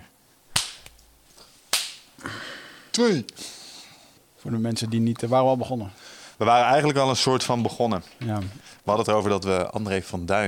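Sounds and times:
single hand clap for recording sync: 0.6 - 1.0, 1.7 - 2.1
speech: 3.0 - 3.6, 4.4 - 10.4.

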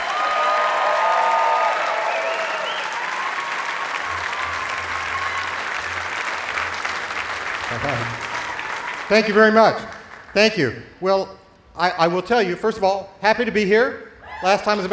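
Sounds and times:
audience applause welcoming a performer at Newport Folk Festival: 0.0 - 10.4
speech: 7.7 - 8.2, 9.1 - 14.9.

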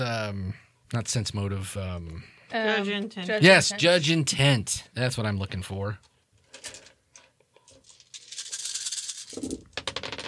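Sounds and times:
speech: 0.0 - 6.8
dice rattling across a hard surface: 7.7 - 10.2.

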